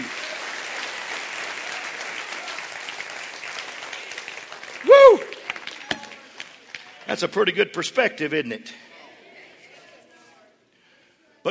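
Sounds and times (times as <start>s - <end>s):
standing audience clapping hands: 0.0s - 7.6s
speech: 7.1s - 8.9s.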